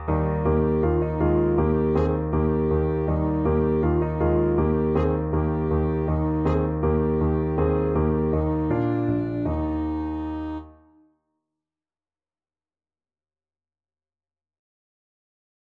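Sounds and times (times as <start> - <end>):
alto saxophone duet: 0.0 - 10.9.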